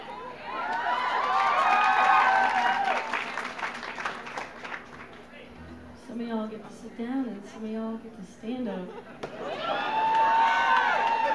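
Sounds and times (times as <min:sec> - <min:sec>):
audience clapping hands: 0:00.5 - 0:05.5, 0:09.6 - 0:11.3
speech: 0:07.0 - 0:09.2.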